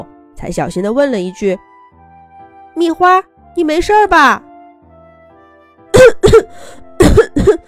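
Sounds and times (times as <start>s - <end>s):
speech: 0.0s - 1.7s, 2.8s - 4.5s, 6.4s - 6.8s, 7.5s - 7.6s
coughing: 5.9s - 7.6s.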